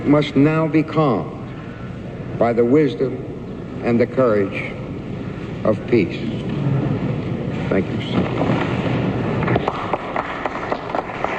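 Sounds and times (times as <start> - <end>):
speech: 0.1 - 1.4, 2.4 - 4.8, 5.6 - 6.6, 7.7 - 8.8
ripple of applause: 9.4 - 11.3.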